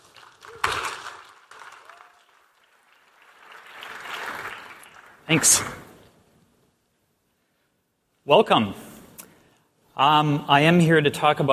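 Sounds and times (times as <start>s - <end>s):
audience applause: 0.0s - 5.9s
speech: 5.3s - 5.8s, 8.3s - 8.9s, 10.0s - 11.5s.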